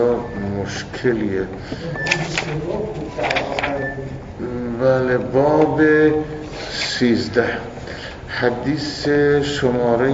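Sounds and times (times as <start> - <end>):
speech: 0.7 - 10.1
book pages turning: 2.0 - 3.9.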